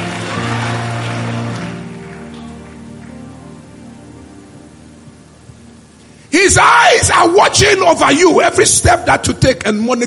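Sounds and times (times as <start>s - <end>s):
audience clapping: 0.0s - 3.6s
speech: 6.4s - 10.0s.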